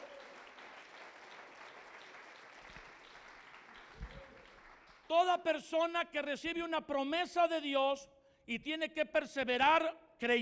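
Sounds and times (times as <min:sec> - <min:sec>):
audience applauding in a large room: 0:00.0 - 0:05.1
speech: 0:05.1 - 0:10.3.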